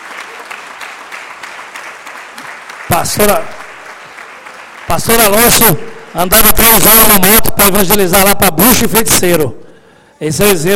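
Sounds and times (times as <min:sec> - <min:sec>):
audience applause: 0:00.0 - 0:06.7
speech: 0:03.0 - 0:03.6, 0:04.9 - 0:09.6, 0:10.2 - 0:10.7.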